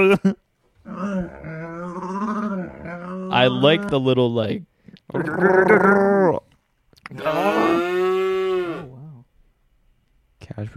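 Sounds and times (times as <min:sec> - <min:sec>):
speech: 0:00.0 - 0:00.4, 0:03.3 - 0:06.4, 0:07.1 - 0:08.2, 0:10.6 - 0:10.7
camel vocalizing: 0:00.8 - 0:04.2, 0:05.1 - 0:06.5, 0:07.1 - 0:09.3.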